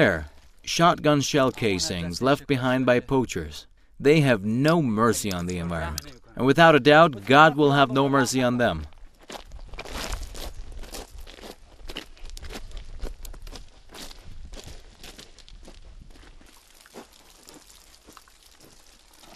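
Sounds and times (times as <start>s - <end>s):
speech: 0.0s - 9.4s
crunching footsteps on a long hike: 8.8s - 19.3s.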